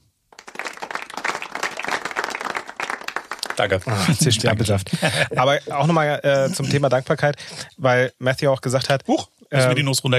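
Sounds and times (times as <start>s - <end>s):
applause: 0.3s - 4.4s
laughter: 3.6s - 7.2s
speech: 3.6s - 10.1s.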